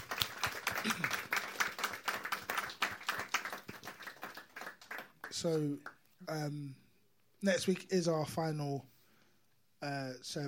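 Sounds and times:
audience applause: 0:00.0 - 0:05.9
speech: 0:00.8 - 0:01.2, 0:05.4 - 0:06.8, 0:07.4 - 0:08.9, 0:09.8 - 0:10.4.

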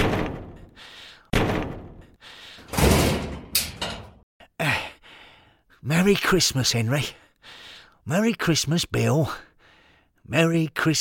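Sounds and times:
sledgehammer crashing down on the quantum mechanism: 0:02.7 - 0:04.2
speech: 0:05.8 - 0:07.2, 0:08.0 - 0:09.5, 0:10.3 - 0:10.9.

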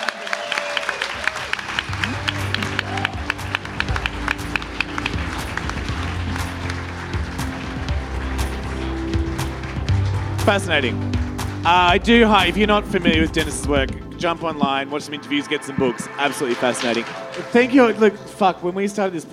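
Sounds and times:
live audience applause: 0:00.0 - 0:13.6
speech: 0:10.5 - 0:19.3.

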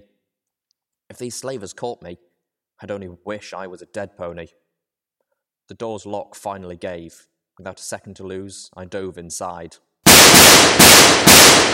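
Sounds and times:
speech: 0:01.2 - 0:04.6, 0:05.7 - 0:11.5
rapid combat shotgun shots: 0:10.0 - 0:11.7.

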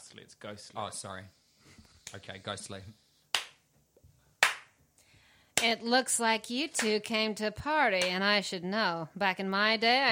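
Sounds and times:
speech: 0:00.1 - 0:03.0, 0:05.6 - 0:10.1
ghastly slow hand clap: 0:03.3 - 0:03.6, 0:04.4 - 0:04.8.

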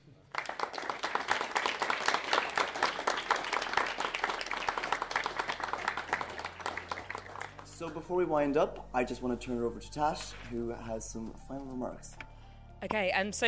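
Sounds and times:
audience applause: 0:00.0 - 0:08.0
speech: 0:07.8 - 0:12.2, 0:12.8 - 0:13.4.

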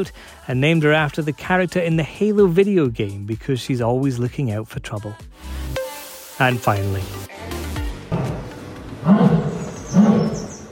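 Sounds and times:
speech: 0:00.0 - 0:05.6, 0:06.4 - 0:07.6
excited Asiatic lions roaring at London Zoo: 0:09.0 - 0:10.7.

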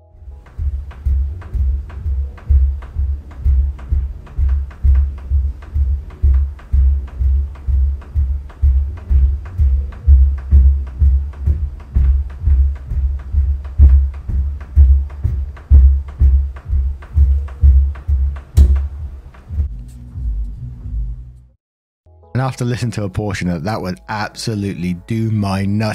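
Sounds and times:
heavy thuds from someone jumping on the floor upstairs: 0:00.6 - 0:19.1
speech: 0:22.4 - 0:25.9.

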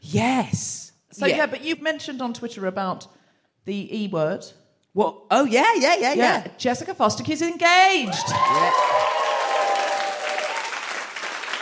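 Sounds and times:
speech: 0:00.1 - 0:09.2
live audience applause: 0:08.1 - 0:11.6.

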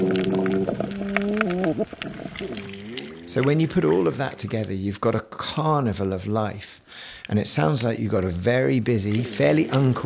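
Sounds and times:
constant crackle of scattered clicks and snaps: 0:00.0 - 0:04.6
reef fish croaking in low tonal calls: 0:00.0 - 0:05.1, 0:08.7 - 0:10.0
speech: 0:03.3 - 0:10.0.

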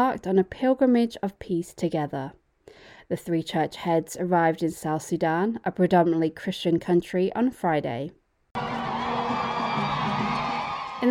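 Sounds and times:
speech: 0:00.0 - 0:08.7
crowd cheering and shouting: 0:08.6 - 0:11.0.

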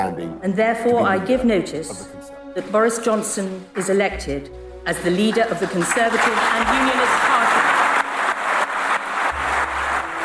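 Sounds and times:
speech: 0:00.0 - 0:07.5
crowd applauding and cheering: 0:05.1 - 0:10.2.

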